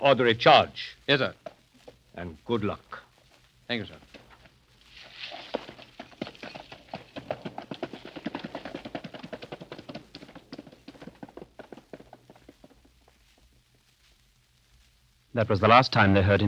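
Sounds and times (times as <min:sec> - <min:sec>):
speech: 0:00.0 - 0:01.4, 0:02.2 - 0:03.0, 0:03.7 - 0:04.1, 0:15.4 - 0:16.4
horse hooves clip-clopping ridden toward a desert fort: 0:00.0 - 0:15.1.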